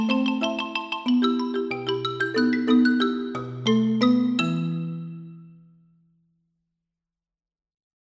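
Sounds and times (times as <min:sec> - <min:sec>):
fast xylophone piece: 0:00.0 - 0:05.7.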